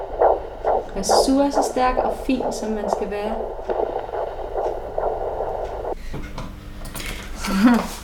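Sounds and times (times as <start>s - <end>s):
fetal heartbeat on a Doppler monitor: 0.0s - 6.0s
speech: 1.0s - 3.8s, 7.5s - 8.0s.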